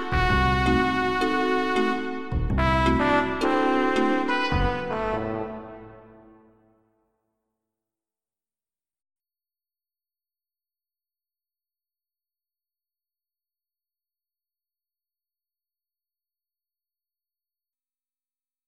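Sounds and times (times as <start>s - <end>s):
trumpet jive music: 0.0s - 6.8s.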